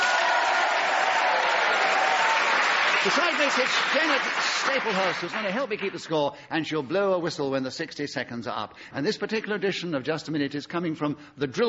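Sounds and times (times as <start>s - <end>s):
audience applause welcoming the Just a Minute panel: 0.0s - 6.1s
speech: 3.0s - 11.6s.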